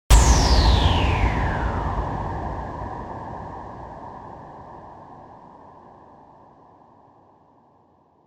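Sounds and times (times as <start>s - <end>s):
raucous impact: 0.1s - 4.8s.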